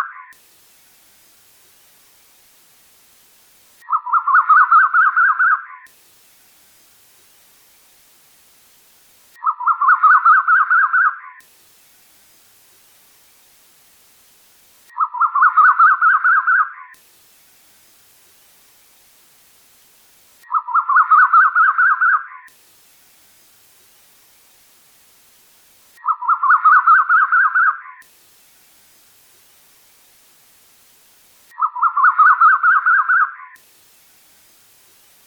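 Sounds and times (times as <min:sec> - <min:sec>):
bird chattering song: 0:00.0 - 0:00.4, 0:03.8 - 0:05.9, 0:09.4 - 0:11.4, 0:14.9 - 0:17.0, 0:20.4 - 0:22.5, 0:26.0 - 0:28.0, 0:31.5 - 0:33.6.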